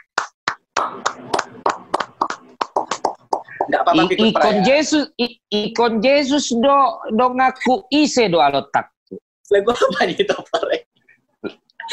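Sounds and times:
hand clapping: 0.0 - 3.8
speech: 0.9 - 1.9, 3.7 - 10.8.

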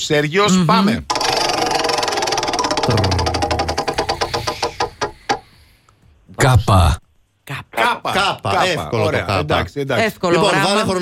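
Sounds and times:
speech: 0.0 - 1.1, 2.9 - 3.3, 6.5 - 7.0, 7.8 - 11.0
game prize wheel spinning: 1.1 - 5.4.

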